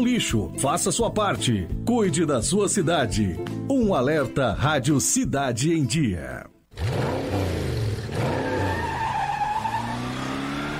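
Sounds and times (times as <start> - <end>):
speech: 0.0 - 6.5
car engine revving: 6.7 - 10.7
furious driver's car tires squealing, movie-style sound effect: 6.8 - 10.7.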